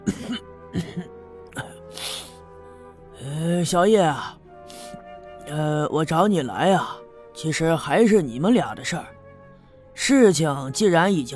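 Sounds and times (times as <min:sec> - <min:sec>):
man coughing: 0:00.0 - 0:01.7
speech: 0:00.1 - 0:01.0, 0:03.6 - 0:04.4, 0:05.5 - 0:09.2, 0:10.0 - 0:11.3.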